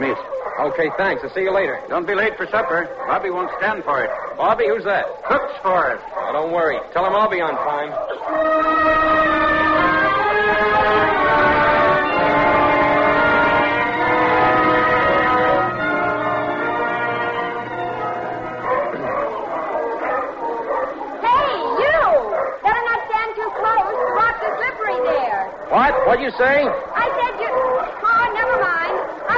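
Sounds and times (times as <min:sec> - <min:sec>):
seals barking on the rocks: 0:00.0 - 0:29.3
speech: 0:00.1 - 0:09.4, 0:26.1 - 0:26.9.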